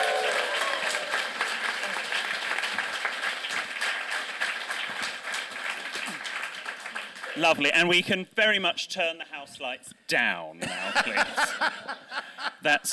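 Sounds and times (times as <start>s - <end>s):
audience applause: 0.0s - 7.6s
speech: 7.4s - 12.9s
laughter: 10.6s - 12.9s.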